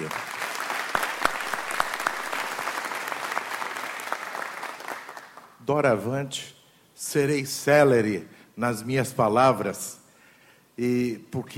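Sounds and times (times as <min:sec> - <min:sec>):
audience applause: 0:00.0 - 0:05.6
speech: 0:05.7 - 0:10.0, 0:10.8 - 0:11.5.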